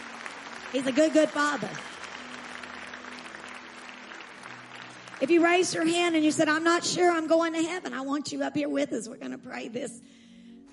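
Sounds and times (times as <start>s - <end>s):
audience hand clapping: 0.0s - 6.2s
speech: 0.7s - 2.0s, 5.2s - 10.2s.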